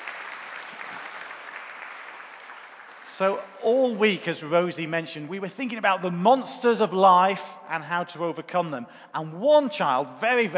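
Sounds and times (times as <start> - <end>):
crowd round of applause: 0.0 - 3.4
speech: 3.2 - 10.5.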